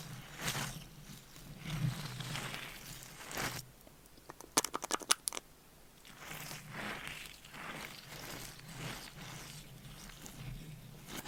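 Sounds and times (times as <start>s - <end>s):
soft brushing and scratching on a microphone: 0.0s - 3.6s, 6.0s - 11.2s.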